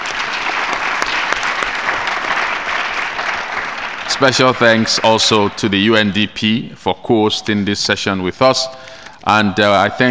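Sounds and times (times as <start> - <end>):
audience applauding the speakers: 0.0 - 6.1
speech: 4.2 - 10.0.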